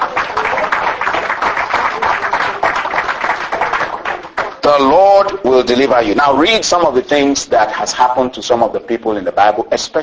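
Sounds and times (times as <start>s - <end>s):
crowd audience clapping hands: 0.0s - 5.0s
speech: 4.7s - 10.0s.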